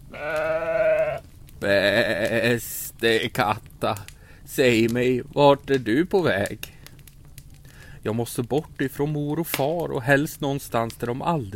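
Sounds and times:
sheep bleating: 0.1 - 2.5
speech: 1.6 - 6.7, 8.0 - 11.5.

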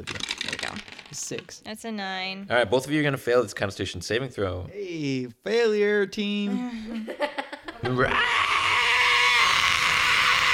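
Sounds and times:
speech: 1.2 - 8.5
voice imitating a monster screech: 7.8 - 10.5.

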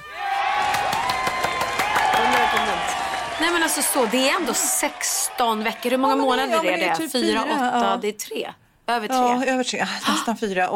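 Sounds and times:
applause sound effect: 0.4 - 6.5
speech: 3.4 - 10.7.

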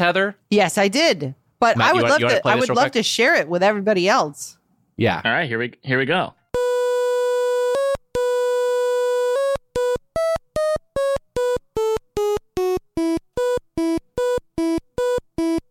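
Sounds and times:
speech: 0.0 - 6.4
Game Boy printer chiptune music track: 1.8 - 2.9, 6.6 - 15.7.

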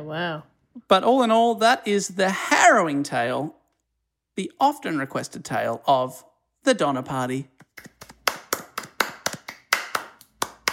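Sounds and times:
speech: 0.0 - 3.6, 4.4 - 8.0
polite applause: 7.8 - 10.7.

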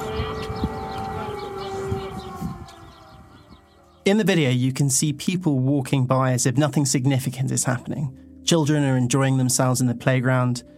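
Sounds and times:
air raid siren: 0.0 - 4.2
faint street noise: 0.0 - 4.5
speech: 4.0 - 10.7.

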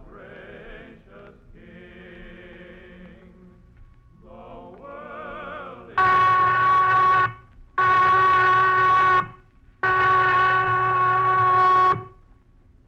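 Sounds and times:
prison whistle sounding: 6.0 - 12.2.

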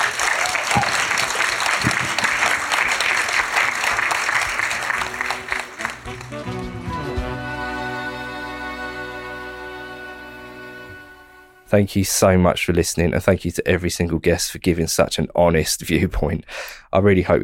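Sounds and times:
audience applause: 0.0 - 7.2
speech: 11.7 - 17.4.

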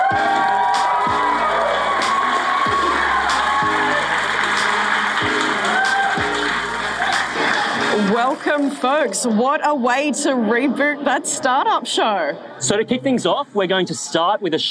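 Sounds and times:
live show audience cheering, whooping and clapping to welcome a guest: 0.0 - 9.3
speech: 8.1 - 14.7.

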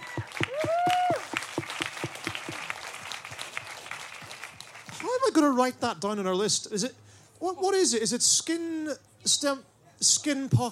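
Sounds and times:
audience applause: 0.0 - 5.2
whistle or whoop: 0.1 - 1.2
speech: 5.4 - 10.7.

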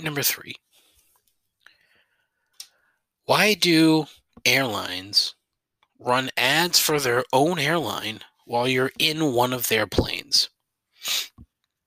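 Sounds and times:
speech: 0.0 - 0.7, 3.3 - 5.4, 6.0 - 11.4
person sniffling: 10.9 - 11.5
person sneezing: 11.0 - 11.4.

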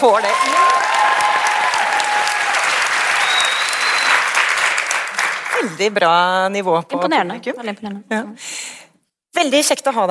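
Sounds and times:
speech: 0.0 - 1.2, 5.6 - 8.6, 9.4 - 10.0
live audience applause: 0.0 - 5.8.

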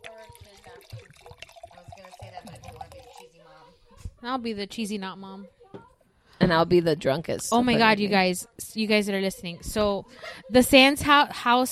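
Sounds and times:
wine pouring into a glass: 0.0 - 3.6
speech: 4.2 - 5.6, 6.4 - 11.6.

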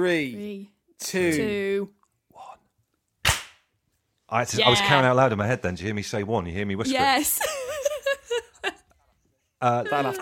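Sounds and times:
speech: 0.0 - 2.0, 4.3 - 7.8, 9.6 - 10.2
hand clap: 3.2 - 3.6.

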